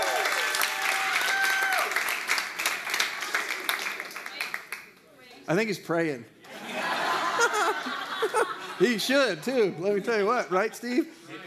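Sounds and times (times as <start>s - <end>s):
audience cheering and applause: 0.0s - 4.1s
speech: 5.5s - 6.4s, 7.8s - 11.4s
laughter: 6.5s - 10.0s.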